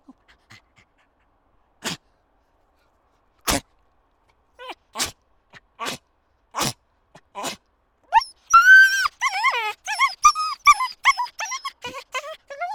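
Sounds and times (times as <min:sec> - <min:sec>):
dog yelping and whimpering with high-pitched cries: 0:08.1 - 0:12.7.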